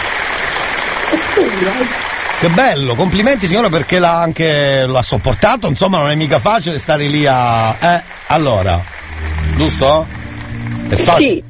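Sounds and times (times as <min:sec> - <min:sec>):
applause: 0:00.0 - 0:11.4
speech: 0:01.4 - 0:09.0, 0:09.6 - 0:10.2, 0:10.9 - 0:11.4
voice rising over applause: 0:09.0 - 0:11.4.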